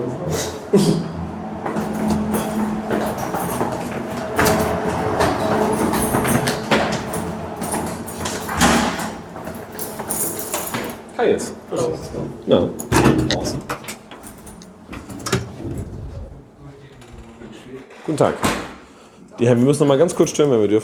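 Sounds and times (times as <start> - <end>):
speech: 0.0 - 1.2, 11.3 - 12.9, 18.2 - 18.6, 19.4 - 20.8
refrigeration chiller whooshing hum on the first floor: 0.0 - 9.9, 14.5 - 17.8.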